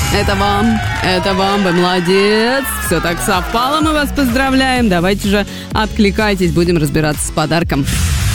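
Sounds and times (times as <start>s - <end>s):
applause sound effect: 0.1s - 4.5s
speech: 0.1s - 8.1s.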